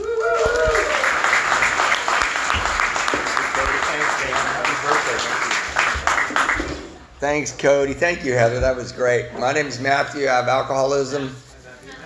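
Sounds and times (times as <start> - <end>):
recovery meeting audience applauding the headliner speaker: 0.0 - 7.1
speech: 7.2 - 11.4.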